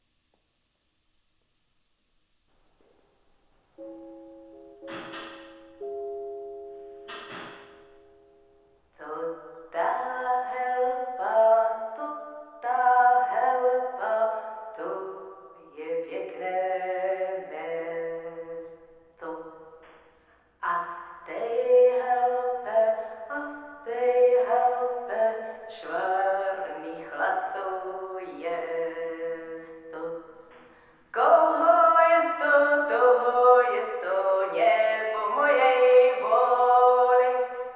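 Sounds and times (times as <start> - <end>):
person singing in a train station: 9.0 - 18.6, 20.6 - 30.2, 31.2 - 37.7.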